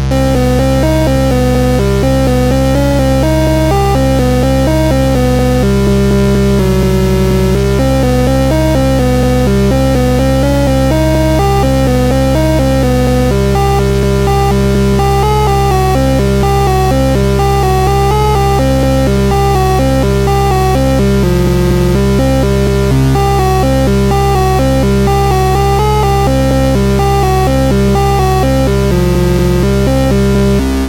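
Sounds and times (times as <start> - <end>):
synth music: 0.1 - 30.8.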